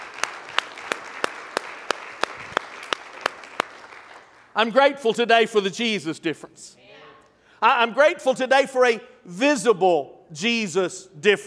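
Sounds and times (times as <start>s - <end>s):
audience clapping hands: 0.0s - 4.8s
speech: 4.6s - 6.8s, 7.6s - 11.4s.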